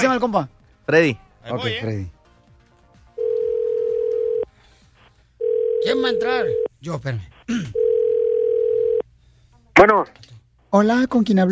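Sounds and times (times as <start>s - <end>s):
speech: 0.0s - 2.2s, 5.8s - 7.8s, 9.8s - 11.5s
telephone dial tone: 3.2s - 4.5s, 5.4s - 6.7s, 7.8s - 9.0s.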